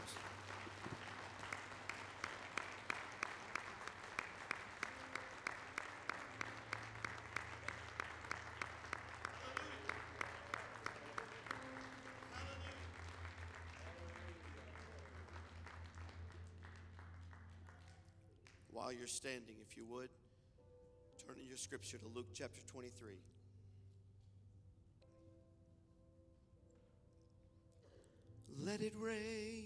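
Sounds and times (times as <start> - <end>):
audience hand clapping: 0.0 - 18.8
speech: 18.8 - 20.2, 21.5 - 23.4, 28.8 - 29.6.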